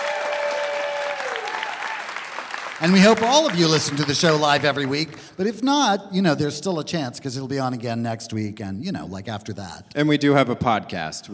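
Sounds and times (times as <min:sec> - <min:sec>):
audience applause: 0:00.0 - 0:05.4
speech: 0:02.8 - 0:11.3.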